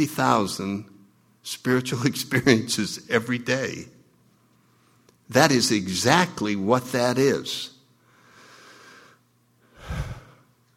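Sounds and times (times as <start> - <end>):
speech: 0.0 - 4.0, 5.3 - 7.7
deep audible breath: 8.0 - 10.6.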